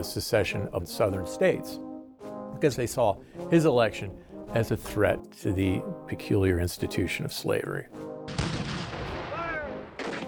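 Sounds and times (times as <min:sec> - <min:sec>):
speech: 0:00.0 - 0:01.9, 0:02.6 - 0:08.4
cannon fire from the Confederate attack on Fort Sumter in 1861: 0:08.3 - 0:10.2.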